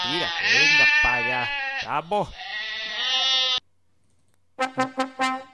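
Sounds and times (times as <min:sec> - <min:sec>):
Zaraibi-breed goat bleating: 0:00.0 - 0:03.6
speech: 0:00.1 - 0:02.6, 0:04.6 - 0:05.4.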